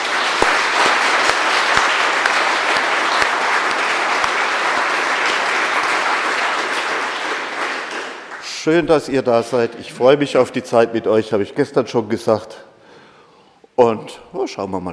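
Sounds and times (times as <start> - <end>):
audience applause: 0.0 - 10.4
speech: 8.7 - 12.7, 13.8 - 14.9.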